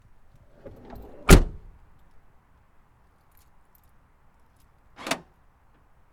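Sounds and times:
car door locking: 0.6 - 1.8, 5.0 - 5.3
car door slamming: 0.6 - 1.8.

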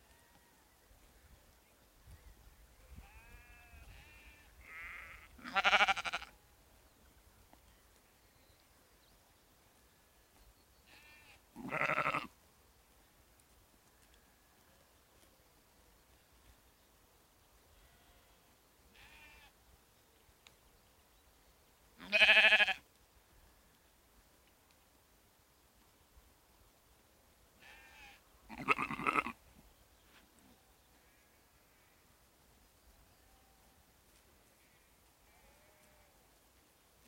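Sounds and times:
sheep and lambs bleating: 2.9 - 6.3, 10.9 - 12.3, 19.0 - 19.5, 22.0 - 22.8, 27.6 - 29.4, 34.6 - 36.2.

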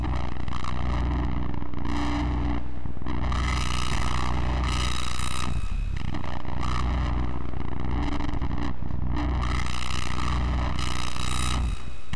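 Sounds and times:
distortion: 0.0 - 12.1.

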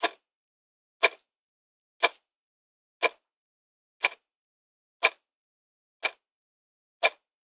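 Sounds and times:
clock ticking: 0.0 - 0.2, 1.0 - 1.2, 2.0 - 2.2, 3.0 - 3.2, 4.0 - 4.2, 6.0 - 6.2.

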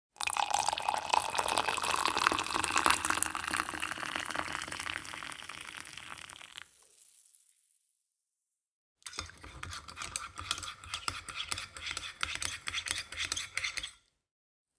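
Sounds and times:
spoon stirring coffee: 0.2 - 6.2, 9.1 - 14.0
coffee pouring: 0.2 - 7.7.

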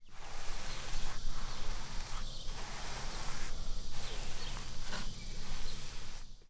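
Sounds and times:
paint brush stroking: 0.0 - 6.4.

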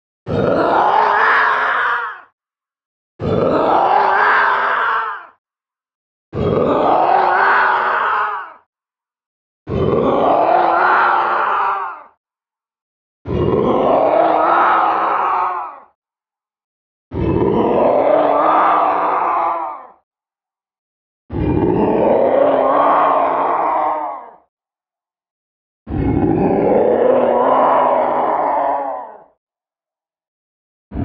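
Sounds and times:
raging madman zombie beast: 0.3 - 2.3, 3.2 - 5.3, 6.4 - 8.6, 9.7 - 12.0, 13.3 - 15.8, 17.1 - 19.9, 21.3 - 24.3, 25.9 - 29.2.

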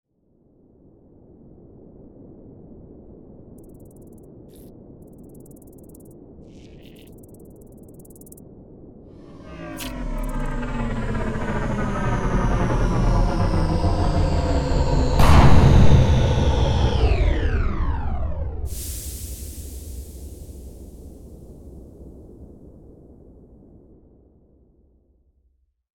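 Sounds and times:
spacecraft landing on a desert planet: 9.2 - 21.7.

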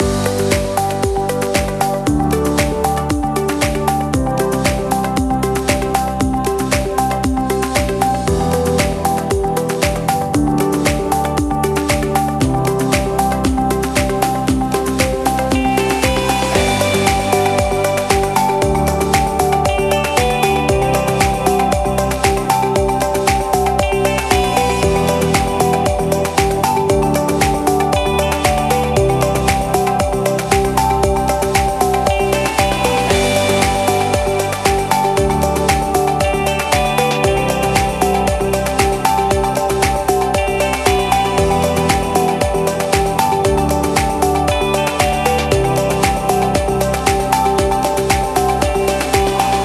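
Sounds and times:
background music loop: 0.0 - 49.6.

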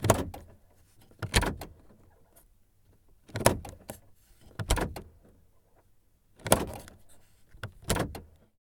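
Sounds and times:
car lock heard from interior: 0.0 - 0.6, 1.2 - 2.0, 3.3 - 5.3, 6.4 - 7.0, 7.6 - 8.4.

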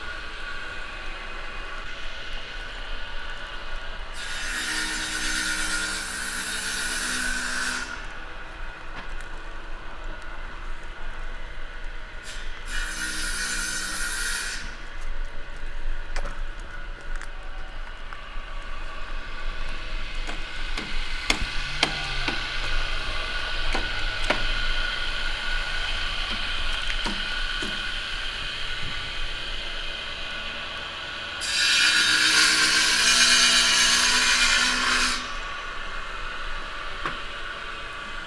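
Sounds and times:
carpenter's workshop ambience: 0.0 - 38.2.

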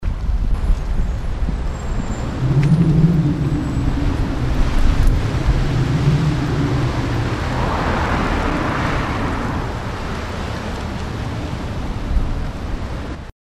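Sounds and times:
howling wind on street: 0.0 - 13.3.

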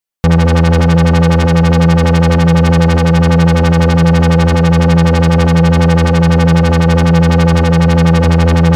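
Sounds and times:
electro bass loop: 0.2 - 8.7.

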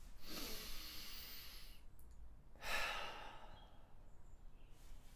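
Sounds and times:
breathing: 0.2 - 1.9, 2.6 - 4.0.

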